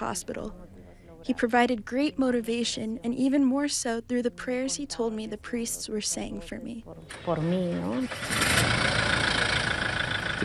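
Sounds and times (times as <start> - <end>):
speech: 0.0 - 8.9
4x4 truck engine running: 7.1 - 10.4.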